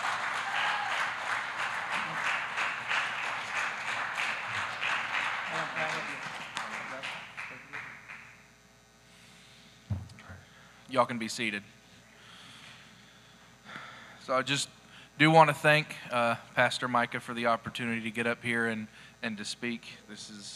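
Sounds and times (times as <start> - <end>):
audience clapping in appreciation: 0.0 - 8.4
speech: 11.0 - 11.8, 14.3 - 20.5.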